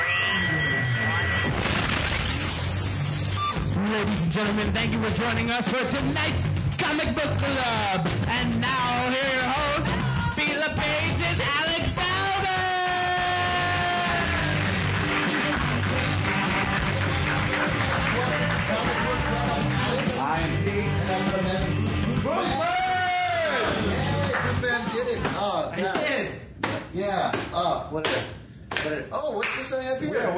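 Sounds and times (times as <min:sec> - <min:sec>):
loud bright music: 0:00.0 - 0:25.5
speech: 0:04.1 - 0:08.6, 0:24.6 - 0:30.3
audience cheering with whoops: 0:12.6 - 0:19.8
audience clapping: 0:13.3 - 0:20.4, 0:23.6 - 0:24.7.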